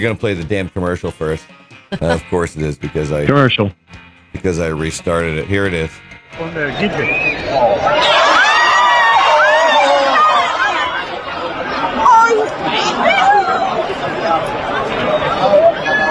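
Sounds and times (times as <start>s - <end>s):
laughter: 0.0s - 3.6s, 4.4s - 5.9s
speech: 0.0s - 8.2s
bullfight crowd crying out, gasping and shrieking in horror: 7.1s - 16.0s.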